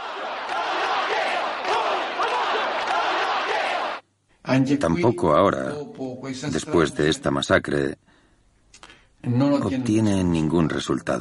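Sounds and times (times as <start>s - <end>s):
angry crowd shouting inside a church: 0.0s - 4.0s
speech: 4.5s - 8.0s, 8.8s - 11.1s.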